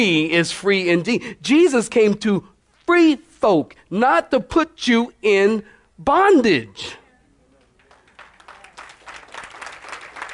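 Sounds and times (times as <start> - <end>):
speech: 0.0 - 7.0
audience clapping: 7.6 - 10.3.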